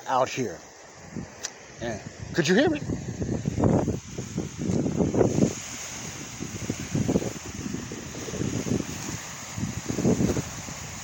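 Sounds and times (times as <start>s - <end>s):
speech: 0.1s - 4.8s
lake waves lapping on beach: 2.4s - 11.0s.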